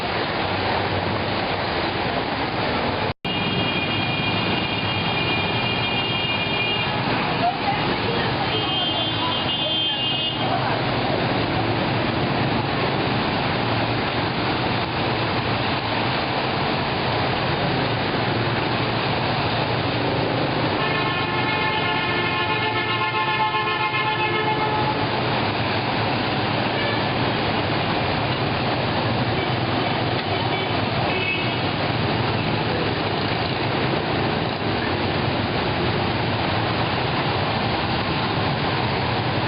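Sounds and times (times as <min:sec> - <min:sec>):
low rumble of passing traffic in Saigon: 0:00.0 - 0:39.4
rain pouring over a flooded Saigon street: 0:00.0 - 0:39.4
vehicle horns in Saigon: 0:03.3 - 0:07.1, 0:08.4 - 0:10.6, 0:20.8 - 0:25.1, 0:30.2 - 0:31.7.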